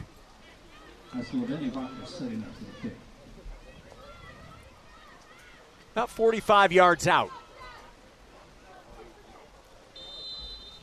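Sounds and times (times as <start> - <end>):
speech: 1.1 - 3.1, 6.0 - 7.4
referee's whistle: 10.0 - 10.8.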